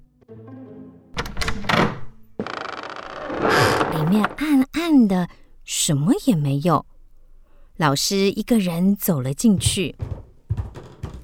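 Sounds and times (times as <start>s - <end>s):
door opening: 1.2s - 4.6s, 10.0s - 11.2s
speech: 4.0s - 6.9s, 7.8s - 10.2s.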